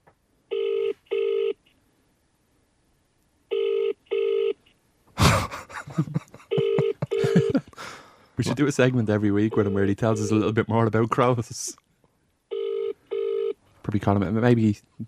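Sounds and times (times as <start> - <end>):
telephone ringing tone: 0.5 - 1.6, 3.5 - 4.6, 6.5 - 7.6, 12.5 - 13.6
laughter: 5.2 - 8.6
speech: 6.0 - 6.2, 8.4 - 11.8, 13.9 - 15.0.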